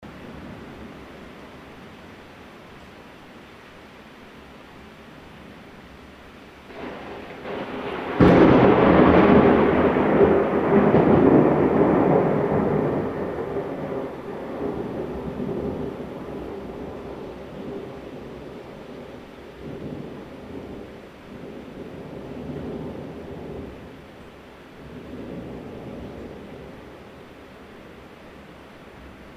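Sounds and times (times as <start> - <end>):
thunder: 6.7 - 24.0.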